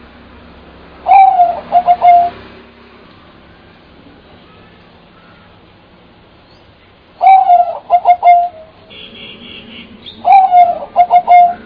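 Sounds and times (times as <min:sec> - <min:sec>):
bird call: 0:01.0 - 0:02.4, 0:06.5 - 0:08.7, 0:10.0 - 0:11.6.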